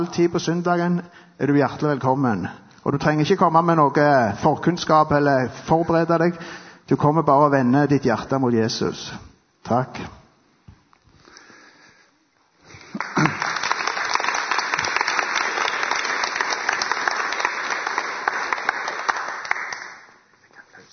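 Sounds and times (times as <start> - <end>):
speech: 0.0 - 10.2
crowd applause: 12.7 - 20.2.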